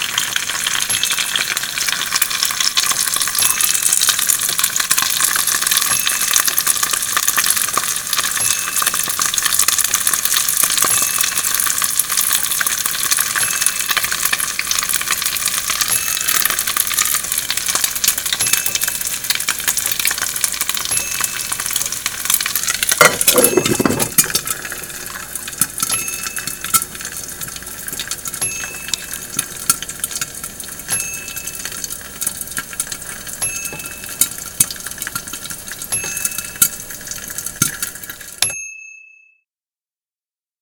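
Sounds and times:
egg frying and sizzling in a pan: 0:00.0 - 0:38.6.

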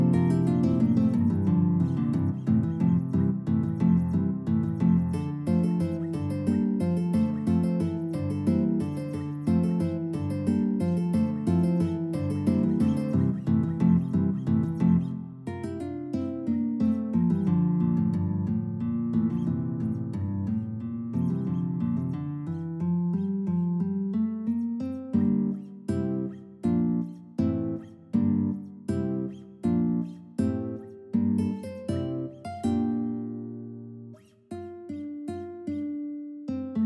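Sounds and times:
guitar trio playing: 0:00.0 - 0:36.8.

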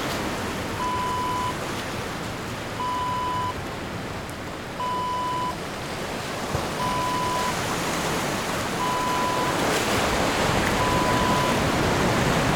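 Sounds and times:
ocean waves: 0:00.0 - 0:12.5.

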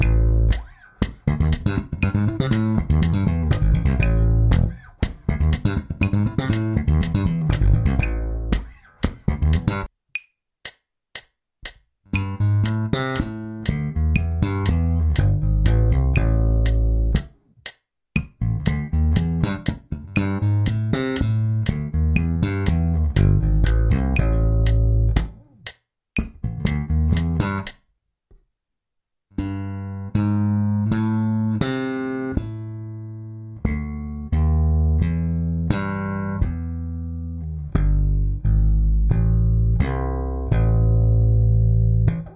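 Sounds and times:
double thumb guitar exercise in A minor: 0:00.0 - 0:09.9, 0:10.6 - 0:27.8, 0:29.4 - 0:42.3.

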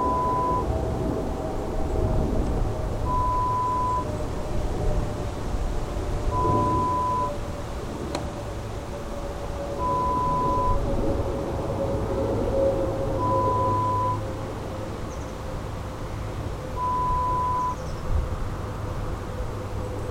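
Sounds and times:
suburban street sounds: 0:00.0 - 0:20.0.

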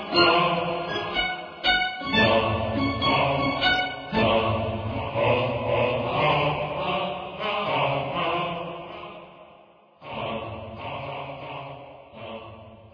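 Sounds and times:
strings: 0:00.0 - 0:05.3
dark choir: 0:00.0 - 0:12.9.

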